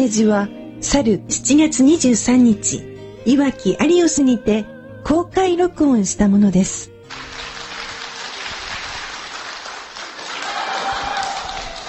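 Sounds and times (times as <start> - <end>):
speech: 0.0 - 7.2
audience applause: 7.1 - 11.8.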